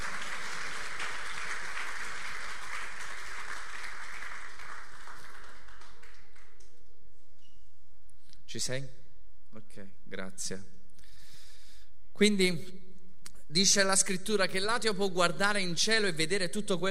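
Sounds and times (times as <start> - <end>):
crowd applauding: 0.0 - 6.8
speech: 8.5 - 10.8, 12.2 - 12.8, 13.5 - 16.8.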